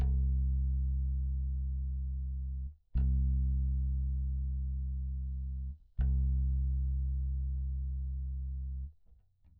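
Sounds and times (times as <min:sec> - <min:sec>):
bass: 0:00.0 - 0:09.5.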